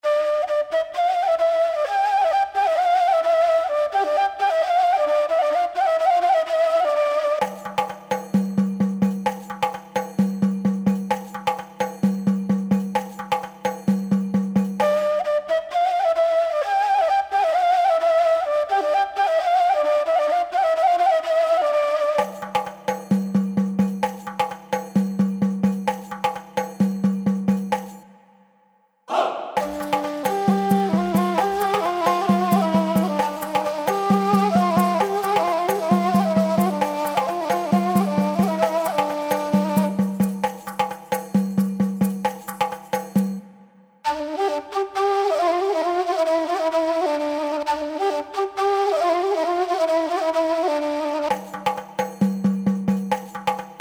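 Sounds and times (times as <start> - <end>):
ancient ethnic Greek music: 0.0 - 28.4, 29.1 - 53.8.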